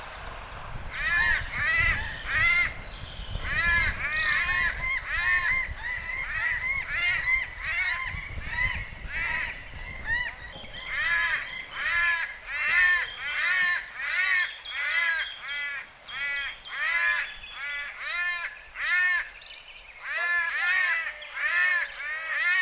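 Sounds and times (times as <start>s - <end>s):
Cuban palm crow cawing: 0.9s - 2.8s, 3.4s - 19.4s, 20.0s - 22.6s.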